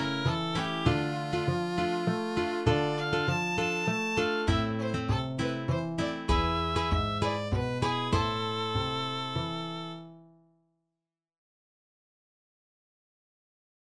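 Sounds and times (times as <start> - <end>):
mazurka: 0.0 - 10.1.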